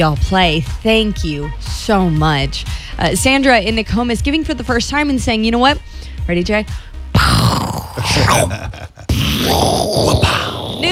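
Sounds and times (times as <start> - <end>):
speech: 0.0 - 10.9
man's voice imitating a pirate cannon: 7.2 - 10.9.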